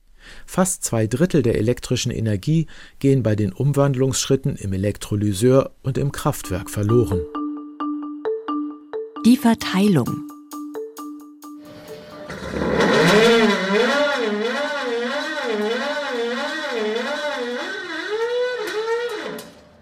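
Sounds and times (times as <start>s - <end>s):
speech: 0.5s - 7.4s, 9.2s - 10.3s
natural gas squeaking and hissing as it is sucked out of a pipeline: 12.2s - 19.6s.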